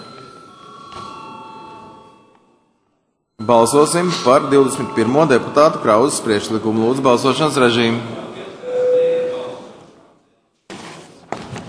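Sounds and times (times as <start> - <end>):
bell rung before a vote: 0.0 - 7.9
speech: 3.4 - 8.3.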